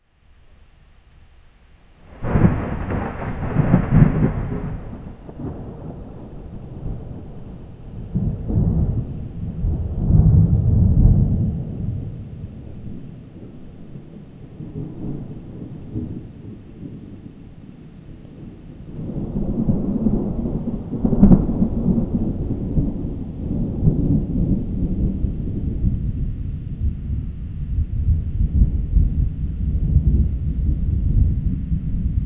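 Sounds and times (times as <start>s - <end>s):
storm: 2.0s - 32.2s.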